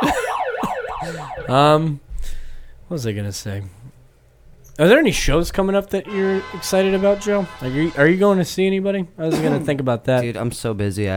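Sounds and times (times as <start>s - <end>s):
fire alarm: 0.0s - 1.5s
speech: 1.5s - 2.0s, 2.9s - 3.8s, 4.8s - 11.1s.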